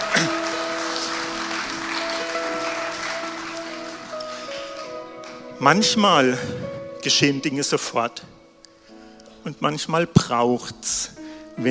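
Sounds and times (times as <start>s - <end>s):
audience applause: 0.0s - 6.6s
speech: 5.6s - 8.3s, 9.4s - 11.7s.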